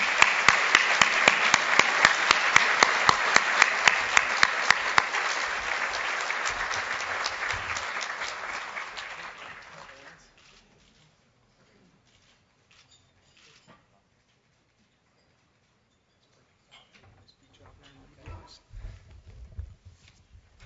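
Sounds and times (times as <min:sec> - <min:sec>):
audience applause welcoming Canada's federal finance minister: 0:00.0 - 0:10.2.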